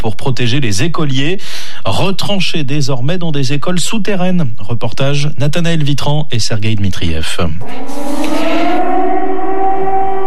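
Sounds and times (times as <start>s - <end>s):
speech: 0.0s - 8.9s
air raid sirens sounding over a city: 7.6s - 10.2s.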